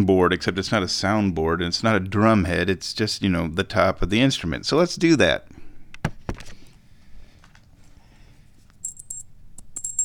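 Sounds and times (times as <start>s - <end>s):
speech: 0.0s - 5.5s
small jingle shaken before being taped onto an instrument: 8.8s - 10.0s.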